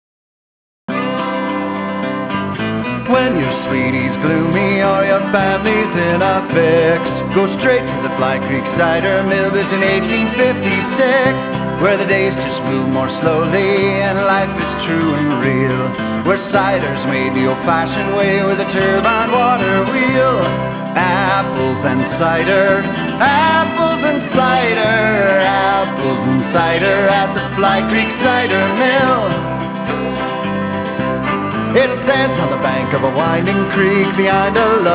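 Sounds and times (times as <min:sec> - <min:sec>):
jingle: 0:01.0 - 0:34.9.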